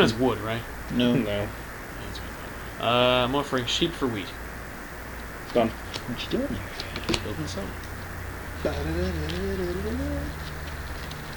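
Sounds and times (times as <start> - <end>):
speech: 0.0 - 1.6, 2.8 - 4.4, 5.5 - 7.8, 8.6 - 10.5
steady hum: 0.0 - 11.3
dove-like cooing ringtone: 8.6 - 10.4.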